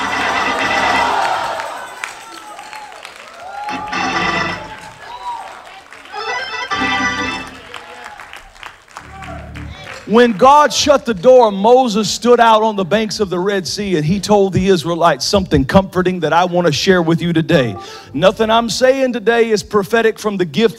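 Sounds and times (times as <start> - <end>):
audience shouting and cheering: 0.0 - 11.6
speech: 10.1 - 20.7.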